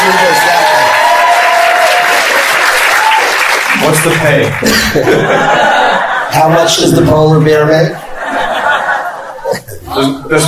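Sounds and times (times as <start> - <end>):
audience applauding: 0.0 - 6.0
speech: 3.9 - 8.0, 10.0 - 10.4
people chuckling and laughing: 4.5 - 7.2, 7.8 - 10.4.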